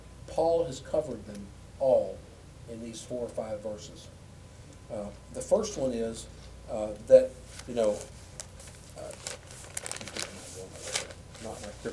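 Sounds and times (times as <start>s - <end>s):
speech: 0.5s - 4.2s, 4.9s - 8.2s, 11.4s - 11.9s
paper notes being shuffled: 7.5s - 11.9s.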